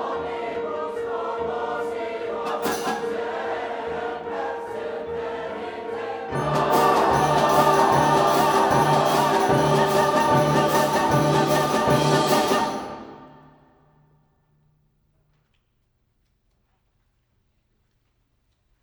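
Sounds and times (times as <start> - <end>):
choir singing: 0.0 - 13.8.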